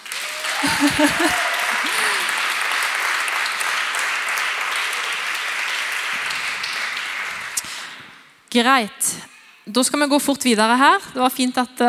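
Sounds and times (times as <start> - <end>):
audience applause: 0.0 - 8.1
laughter: 0.3 - 2.7
speech: 0.6 - 1.8, 8.6 - 11.8.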